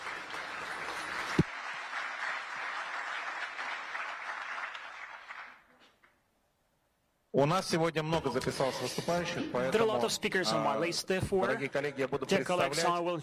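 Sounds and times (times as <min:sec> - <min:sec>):
crowd applauding: 0:00.0 - 0:05.7
speech: 0:07.4 - 0:13.2.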